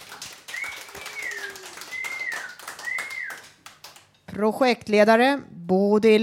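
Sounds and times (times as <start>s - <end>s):
applause: 0.0s - 4.1s
whistling: 0.5s - 3.5s
speech: 4.4s - 6.2s.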